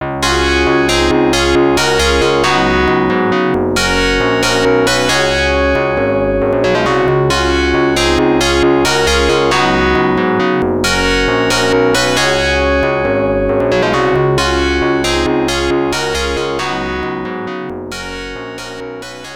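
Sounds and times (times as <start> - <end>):
high score jingle: 0.2 - 17.3.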